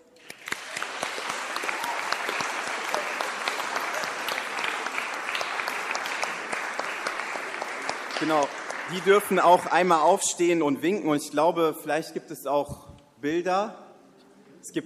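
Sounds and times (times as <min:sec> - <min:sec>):
audience clapping: 0:00.0 - 0:10.2
speech: 0:08.2 - 0:13.8, 0:14.6 - 0:14.8.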